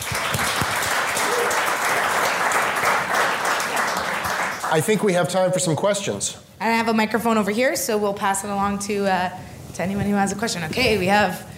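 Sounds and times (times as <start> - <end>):
audience applause: 0.0 - 5.2
speech: 4.7 - 11.5.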